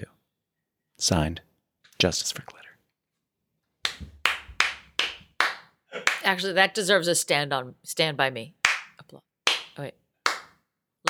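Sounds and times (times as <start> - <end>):
speech: 1.0 - 2.6, 6.3 - 10.0
crowd applause: 4.2 - 6.3.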